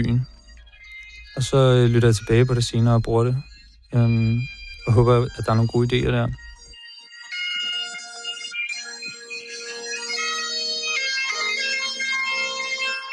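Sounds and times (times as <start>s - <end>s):
speech: 0.0s - 0.3s, 1.4s - 6.5s
bagpipe playing on a phone voice memo: 0.0s - 13.1s.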